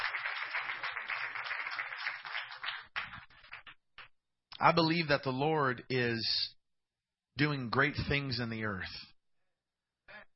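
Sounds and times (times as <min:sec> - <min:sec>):
audience clapping hands: 0:00.0 - 0:04.1
speech: 0:04.6 - 0:06.6, 0:07.4 - 0:09.1.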